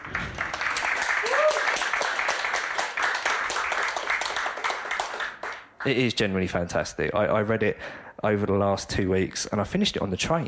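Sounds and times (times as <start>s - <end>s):
audience applause: 0.0s - 6.0s
speech: 5.8s - 10.4s.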